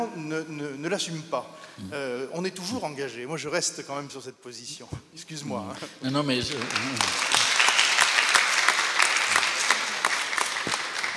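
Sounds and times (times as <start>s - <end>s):
speech: 0.0s - 7.4s
audience applause: 6.4s - 11.1s.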